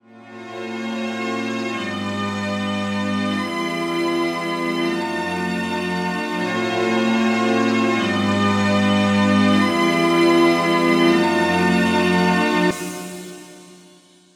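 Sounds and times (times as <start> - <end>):
strings: 0.1 - 13.8.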